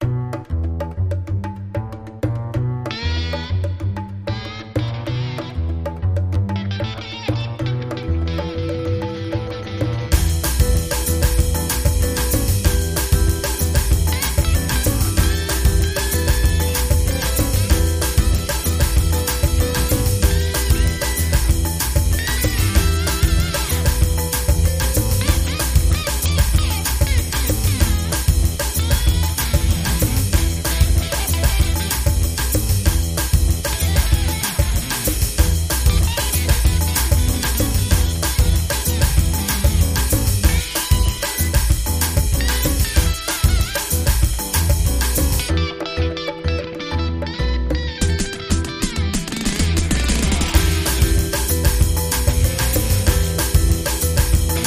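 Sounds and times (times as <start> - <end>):
guitar: 0.0 - 54.6.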